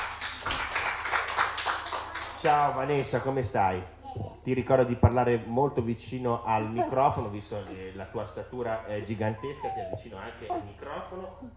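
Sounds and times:
audience applause: 0:00.0 - 0:03.4
speech: 0:02.4 - 0:11.5.

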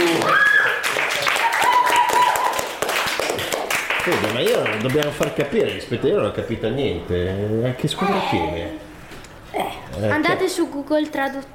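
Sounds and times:
applause: 0:00.0 - 0:05.2
speech: 0:04.1 - 0:08.9, 0:09.5 - 0:11.5.

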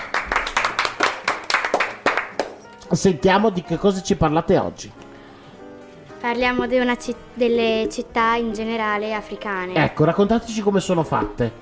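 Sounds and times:
audience applause: 0:00.0 - 0:02.6
speech: 0:02.9 - 0:05.0, 0:06.2 - 0:11.6.

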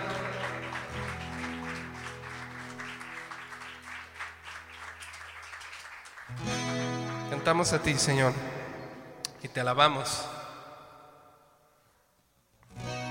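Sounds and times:
audience applause: 0:00.0 - 0:08.0
speech: 0:07.3 - 0:08.6, 0:09.4 - 0:10.4.

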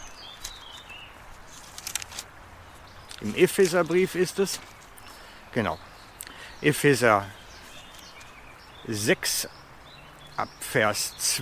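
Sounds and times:
leafing through book pages: 0:00.0 - 0:02.3, 0:03.0 - 0:05.1
speech: 0:03.2 - 0:04.8, 0:05.5 - 0:05.9, 0:06.6 - 0:07.4, 0:08.8 - 0:09.6, 0:10.4 - 0:11.4.

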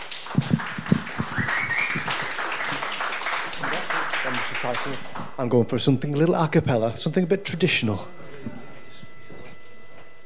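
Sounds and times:
audience clapping: 0:00.0 - 0:05.6
speech: 0:04.7 - 0:08.6.

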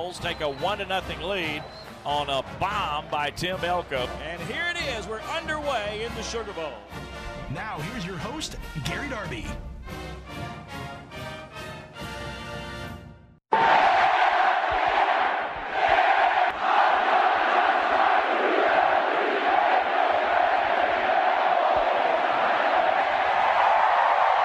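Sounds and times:
about 20,000 fans cheering in Omaha as Ole Miss wins baseball title: 0:00.0 - 0:03.9, 0:13.5 - 0:24.4
speech: 0:00.0 - 0:10.0.

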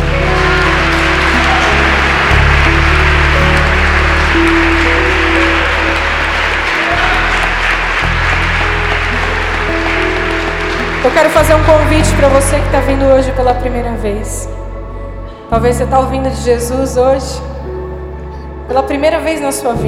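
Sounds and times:
audience applauding: 0:00.0 - 0:12.8
speech: 0:11.2 - 0:14.6, 0:15.5 - 0:17.5, 0:18.7 - 0:19.8.

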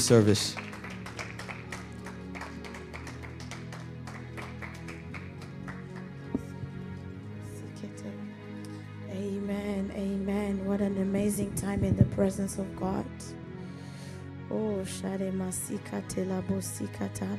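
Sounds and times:
speech: 0:00.0 - 0:00.7, 0:11.4 - 0:13.3, 0:14.5 - 0:17.3
congregation clapping during a church service: 0:00.0 - 0:06.8
instrumental music: 0:00.0 - 0:17.3.

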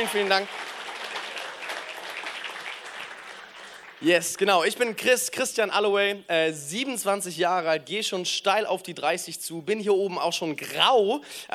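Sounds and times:
speech: 0:00.0 - 0:00.7, 0:04.0 - 0:11.5
audience applause: 0:00.0 - 0:04.9.

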